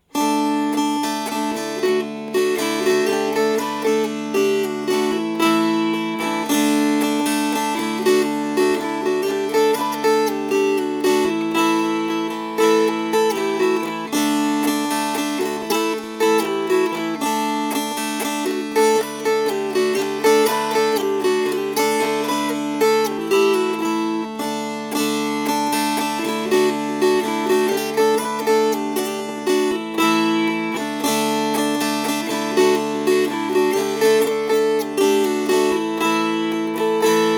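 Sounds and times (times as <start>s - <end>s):
strummed strings: 0.0s - 37.3s.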